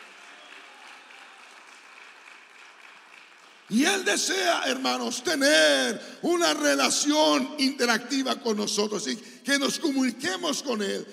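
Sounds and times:
audience applauding: 0.0s - 4.1s
speech: 3.7s - 11.1s.

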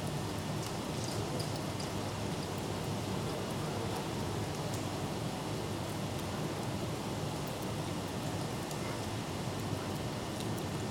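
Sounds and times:
light summer rain from an office window in Leeds: 0.0s - 10.9s.

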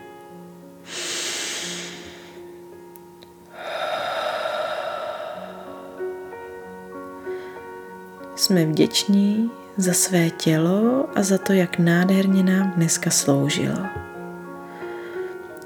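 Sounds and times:
soft music: 0.0s - 15.6s
deep inhale through nose, slow exhale through mouth: 0.8s - 2.5s, 3.5s - 8.0s, 14.6s - 15.6s
speech: 8.4s - 14.1s.

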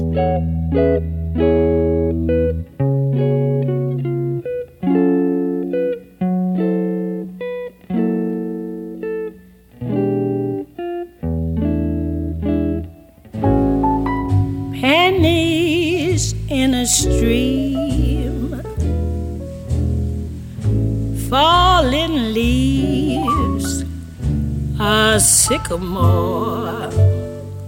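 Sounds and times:
jazz song playing from a record: 0.0s - 27.6s
speech: 0.2s - 2.7s, 25.7s - 26.5s.

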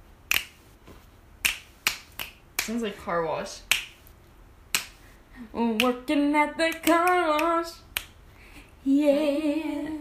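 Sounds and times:
finger snapping: 0.3s - 0.6s, 1.4s - 2.8s, 4.7s - 5.0s, 6.7s - 8.2s
speech: 2.6s - 3.7s, 5.4s - 7.8s, 8.8s - 9.9s.

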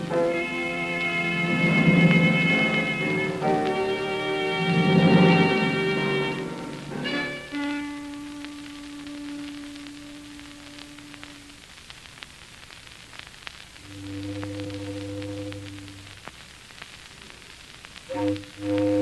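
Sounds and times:
mournful foghorn: 0.0s - 11.6s, 13.8s - 16.3s, 18.1s - 19.0s.

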